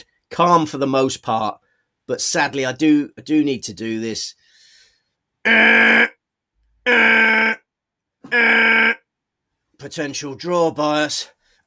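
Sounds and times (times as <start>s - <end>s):
speech: 0.3s - 4.4s, 5.4s - 6.1s, 6.9s - 7.4s, 9.8s - 11.6s
harsh buzzing klaxon alarm: 5.5s - 6.2s, 6.9s - 7.7s, 8.3s - 9.1s.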